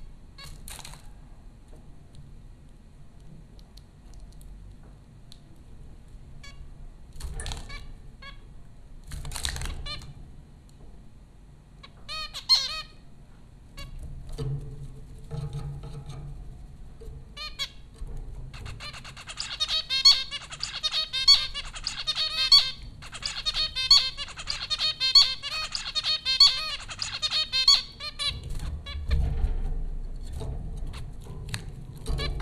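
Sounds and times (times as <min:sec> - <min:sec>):
low background hum: 0:00.0 - 0:32.4
zebra finch calls: 0:11.8 - 0:13.0, 0:18.5 - 0:29.0.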